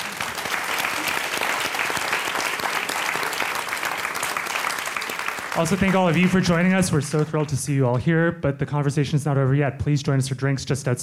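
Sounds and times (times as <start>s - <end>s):
audience applause: 0.0s - 7.8s
speech: 5.6s - 11.0s.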